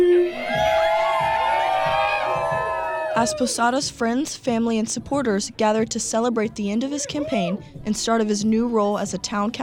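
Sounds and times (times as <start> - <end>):
crowd cheering with whoops at election night party: 0.2 - 3.5
speech: 3.2 - 9.6.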